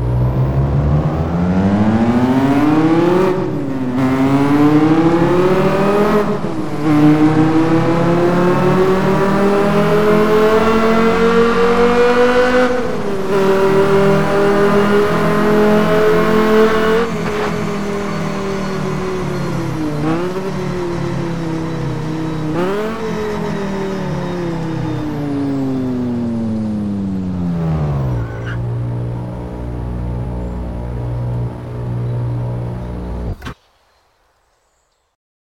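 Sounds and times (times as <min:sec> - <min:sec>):
BMW M5 E60 or M6 E63 car: 0:00.0 - 0:33.6.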